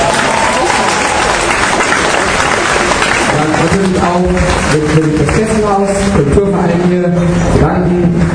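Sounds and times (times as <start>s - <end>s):
audience applause: 0.0s - 6.0s
speech: 3.8s - 8.2s.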